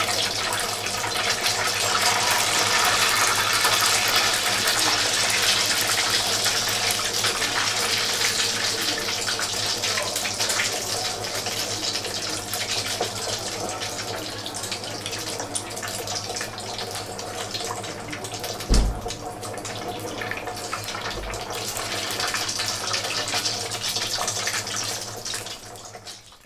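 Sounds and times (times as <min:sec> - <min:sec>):
croquetas frying: 0:00.0 - 0:26.4.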